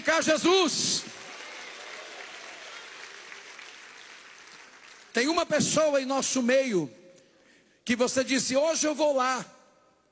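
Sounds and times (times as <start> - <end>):
speech: 0.0 - 1.1, 5.2 - 7.0, 7.9 - 9.6
audience clapping hands: 0.0 - 5.5.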